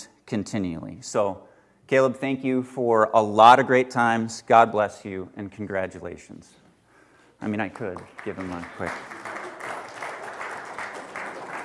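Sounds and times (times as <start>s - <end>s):
speech: 0.3s - 6.6s, 7.4s - 9.2s
audience clapping at a ceremony: 7.5s - 11.6s.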